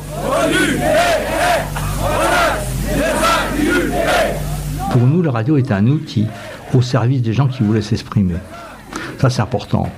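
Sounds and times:
demonstrators shouting slogans: 0.0s - 5.0s, 6.3s - 8.9s
speech: 5.0s - 8.6s, 9.2s - 9.9s.

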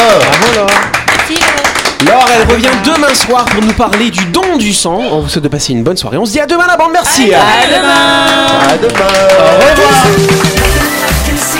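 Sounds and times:
studio clapping: 0.0s - 4.6s, 8.2s - 11.5s
speech: 2.4s - 11.2s.

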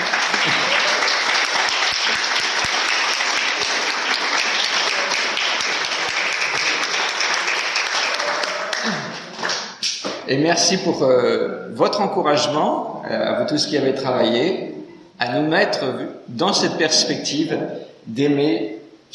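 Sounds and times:
audience applause: 0.0s - 9.8s
speech: 10.3s - 19.1s.

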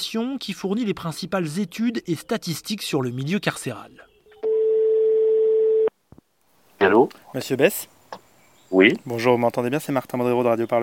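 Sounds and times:
speech: 0.1s - 4.1s, 6.8s - 8.0s, 8.7s - 10.8s
telephone ringback tone as a call is placed: 4.4s - 5.9s.

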